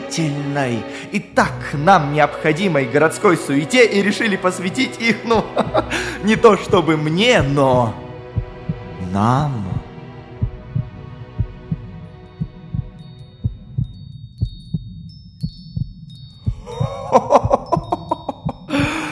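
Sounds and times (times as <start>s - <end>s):
speech: 0.1s - 8.0s, 9.1s - 9.7s
laughter: 5.2s - 6.2s, 16.7s - 19.0s
heartbeat thumping in double pulses: 8.2s - 19.0s
bright chimes: 13.0s - 19.0s.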